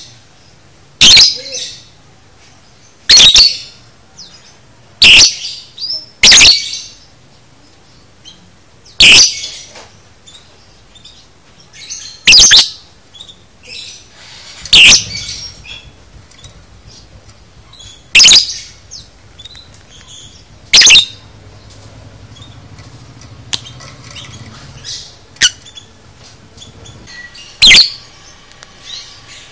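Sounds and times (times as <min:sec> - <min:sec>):
lovebird screeching: 0:01.0 - 0:01.8, 0:03.1 - 0:03.8, 0:05.0 - 0:05.6, 0:06.2 - 0:06.8, 0:09.0 - 0:09.7, 0:11.9 - 0:12.8, 0:13.8 - 0:16.0, 0:17.7 - 0:21.2, 0:27.3 - 0:28.0
lovebird twittering: 0:01.0 - 0:01.9, 0:03.1 - 0:04.4, 0:05.0 - 0:07.1, 0:08.2 - 0:29.5.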